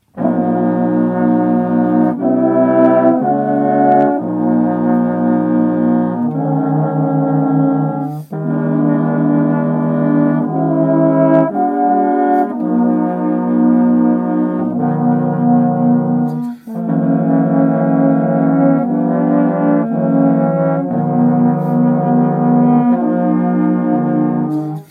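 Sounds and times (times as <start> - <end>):
blues music: 0.0 - 24.8.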